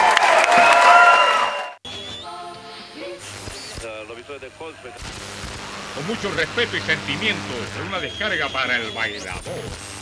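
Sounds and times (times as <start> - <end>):
crowd clapping: 0.0 - 1.8
speech: 4.7 - 5.4, 6.0 - 10.0.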